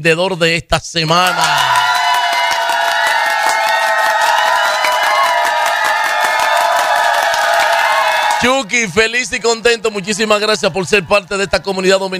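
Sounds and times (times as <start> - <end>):
speech: 0.0 - 1.8, 8.4 - 12.1
applause: 1.1 - 8.8
cheering: 1.1 - 12.1.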